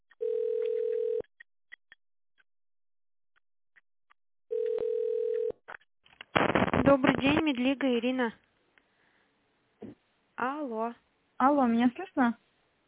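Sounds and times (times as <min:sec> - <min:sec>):
telephone ringback tone while waiting: 0:00.2 - 0:01.2, 0:04.5 - 0:05.5
speech: 0:06.9 - 0:08.5, 0:10.4 - 0:12.4.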